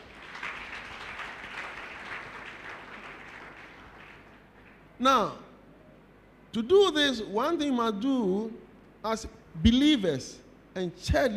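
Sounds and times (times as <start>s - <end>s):
audience clapping: 0.0s - 4.9s
speech: 5.0s - 5.4s, 6.5s - 11.3s.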